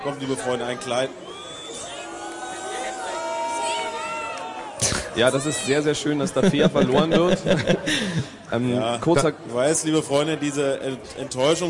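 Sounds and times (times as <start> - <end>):
speech: 0.0 - 1.4, 5.2 - 11.6
crowd cheering: 0.2 - 8.2
laughter: 6.2 - 9.3.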